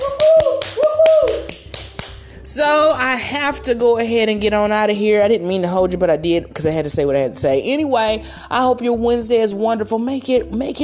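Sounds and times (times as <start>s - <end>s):
hand clapping: 0.0s - 2.2s
speech: 2.6s - 10.8s.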